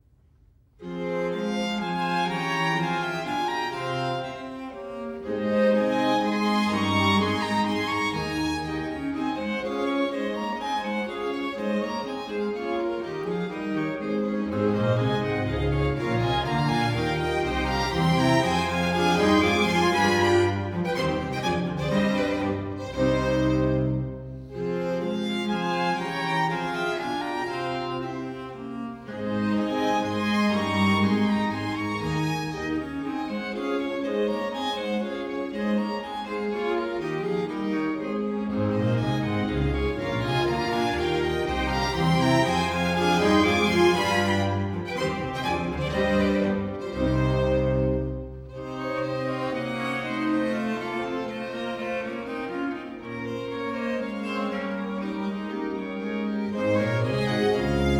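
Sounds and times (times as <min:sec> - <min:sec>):
slow classical piece: 0:00.0 - 0:57.9.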